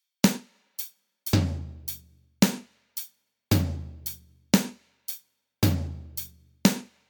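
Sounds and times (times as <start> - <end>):
drums: 0.2 - 7.0.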